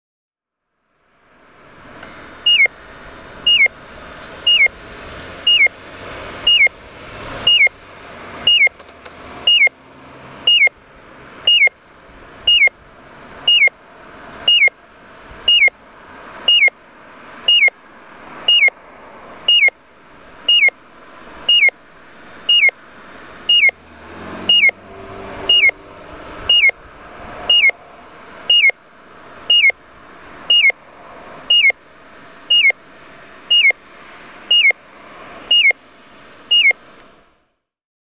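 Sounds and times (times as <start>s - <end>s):
pedestrian signal chirping at an intersection in Tokorozawa Saitama: 1.8s - 5.8s, 6.4s - 7.8s, 8.4s - 8.8s, 9.4s - 9.8s, 10.4s - 10.8s, 11.4s - 11.8s, 12.4s - 12.8s, 13.4s - 13.8s, 14.4s - 14.8s, 15.4s - 35.8s, 36.4s - 37.1s.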